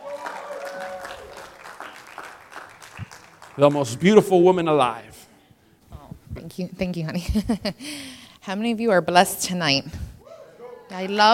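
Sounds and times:
person cheering: 0:00.0 - 0:01.6
audience applause: 0:00.0 - 0:04.4
speech: 0:03.6 - 0:05.2, 0:06.6 - 0:10.0, 0:10.9 - 0:11.3.

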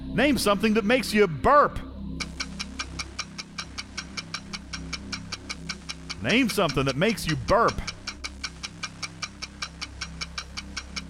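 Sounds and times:
low droning musical bed: 0:00.0 - 0:11.0
speech: 0:00.2 - 0:01.9, 0:06.2 - 0:07.9
game show countdown clock ticking: 0:02.2 - 0:11.0.

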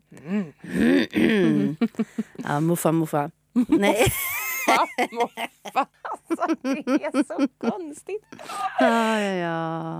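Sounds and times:
person clearing throat: 0:00.2 - 0:01.8
speech: 0:01.9 - 0:09.9.

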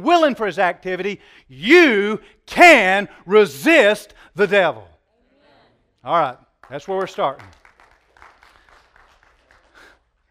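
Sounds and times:
speech: 0:00.0 - 0:04.9, 0:06.0 - 0:07.6
feeble applause from the audience at a Bible teaching session: 0:06.6 - 0:10.2.

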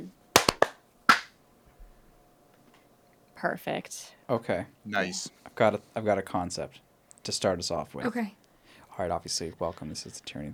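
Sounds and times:
faint steady hum: 0:00.0 - 0:10.5
sharp hand claps for audio sync: 0:00.3 - 0:01.4
speech: 0:03.4 - 0:08.4, 0:09.0 - 0:10.5.

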